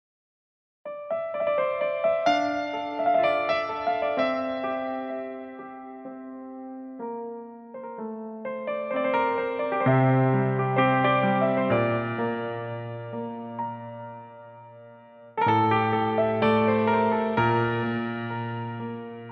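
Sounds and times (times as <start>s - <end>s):
piano music: 0.9s - 19.3s.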